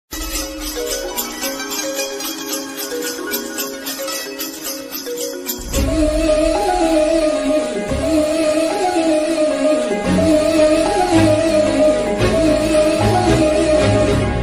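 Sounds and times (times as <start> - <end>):
Tamil love song ringtone: 0.2 - 14.3.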